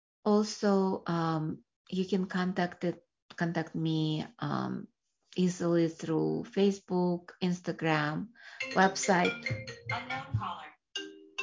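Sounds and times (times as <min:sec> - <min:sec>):
speech: 0:00.3 - 0:10.7
phone ringtone: 0:08.6 - 0:11.4.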